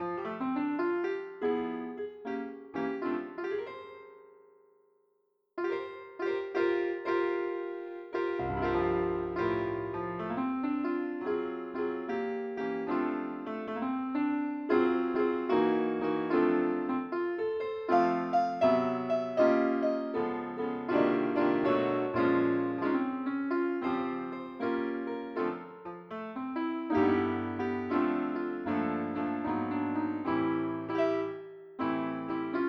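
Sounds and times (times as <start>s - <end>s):
piano: 0.0s - 4.9s, 5.6s - 32.6s.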